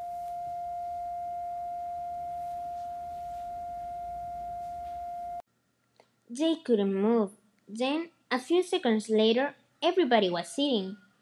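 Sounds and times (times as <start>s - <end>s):
ear ringing buzz tone: 0.0s - 5.4s
speech: 6.4s - 11.0s.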